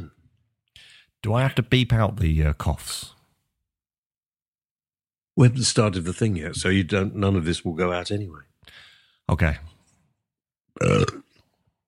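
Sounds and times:
speech: 1.2s - 3.2s, 5.4s - 9.7s, 10.8s - 11.2s
person burping after drinking coffee: 10.8s - 11.5s.

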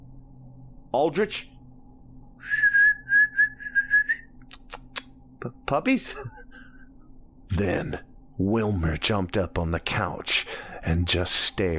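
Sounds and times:
speech: 0.9s - 1.5s, 5.7s - 6.4s, 7.6s - 11.7s
person whistling to call dogs: 2.4s - 4.3s.

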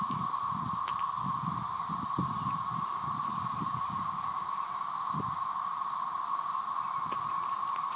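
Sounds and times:
cicadas buzzing loudly: 0.0s - 7.9s.

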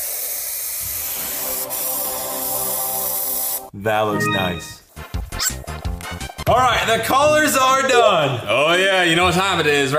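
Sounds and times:
spray paint sprayed onto water: 0.0s - 3.6s
speech: 3.8s - 4.8s, 5.4s - 9.9s.

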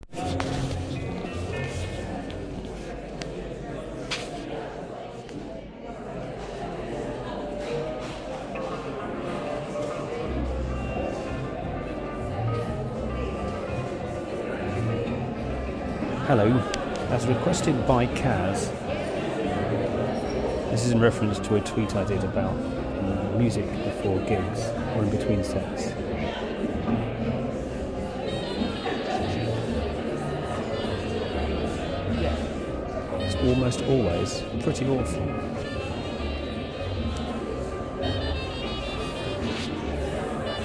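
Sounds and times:
pre-gig music: 0.0s - 4.5s, 6.1s - 40.6s.

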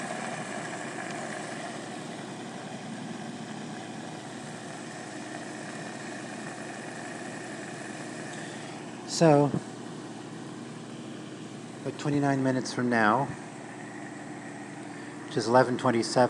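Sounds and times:
washing machine drawing in detergent with rushing water: 0.0s - 9.2s
washing machine low mechanical hum: 0.0s - 16.2s
speech: 9.1s - 9.7s, 12.0s - 13.4s, 15.4s - 16.2s.

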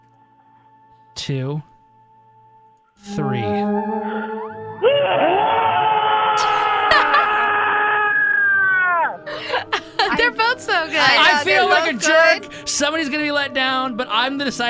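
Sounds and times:
speech: 1.3s - 1.7s, 3.0s - 3.6s, 10.8s - 14.6s
two people screaming horror-movie style: 4.8s - 9.3s
laughter: 6.4s - 7.8s, 9.3s - 12.0s.

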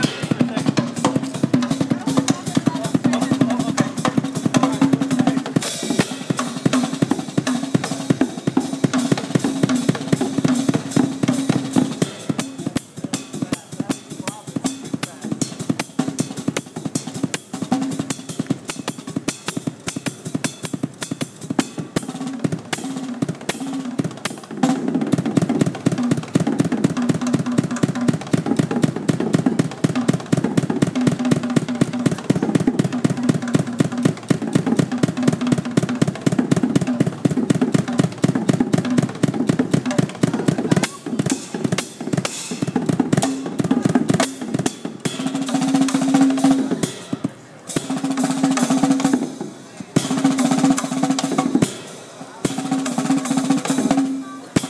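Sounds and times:
drummer playing drums: 0.0s - 54.6s.

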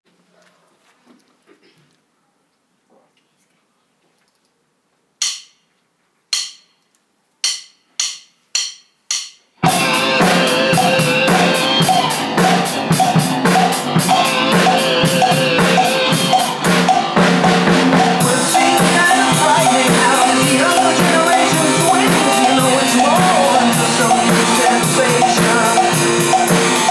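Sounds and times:
drum solo: 7.4s - 26.8s.

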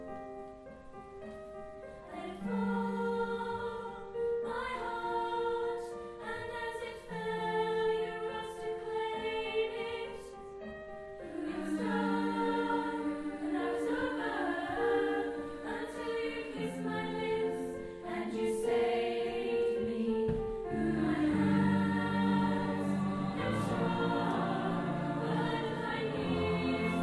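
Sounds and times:
choir singing: 1.9s - 27.0s.

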